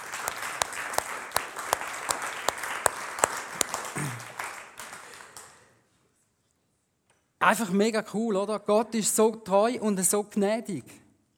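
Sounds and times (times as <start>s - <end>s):
audience clapping: 0.0s - 5.7s
speech: 7.4s - 11.0s.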